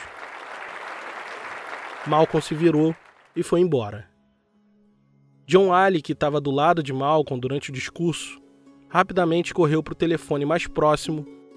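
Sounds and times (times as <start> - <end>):
crowd applauding: 0.0 - 3.5
speech: 2.0 - 4.1, 5.5 - 11.4.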